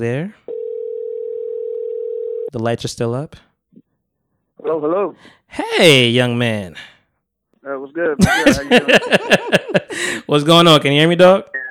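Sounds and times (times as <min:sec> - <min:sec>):
speech: 0:00.0 - 0:00.5, 0:02.5 - 0:03.5, 0:04.6 - 0:07.0, 0:07.6 - 0:11.6
telephone call ringing tone: 0:00.5 - 0:02.5
laughter: 0:08.2 - 0:10.3.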